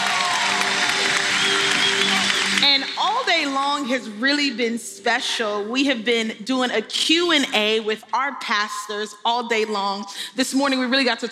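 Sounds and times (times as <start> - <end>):
audience applause at a church gathering: 0.0 - 3.3
speech: 3.0 - 11.3.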